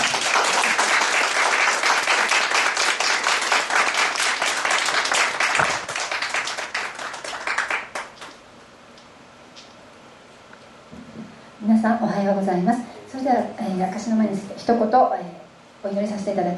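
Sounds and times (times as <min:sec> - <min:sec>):
audience applause welcoming a speaker: 0:00.0 - 0:08.4
speech: 0:12.0 - 0:16.5.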